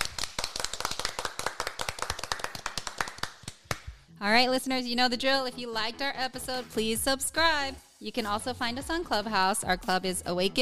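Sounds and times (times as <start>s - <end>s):
round of applause: 0.0s - 3.9s
speech: 4.2s - 10.5s.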